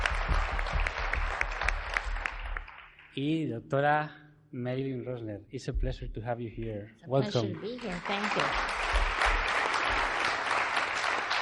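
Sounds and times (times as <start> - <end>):
audience applause: 0.0 - 3.2, 7.6 - 11.4
speech: 3.2 - 8.8.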